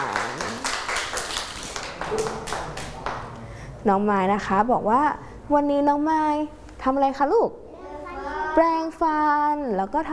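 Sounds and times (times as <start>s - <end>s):
children clapping: 0.0s - 3.3s
speech: 3.8s - 7.6s, 8.6s - 10.1s.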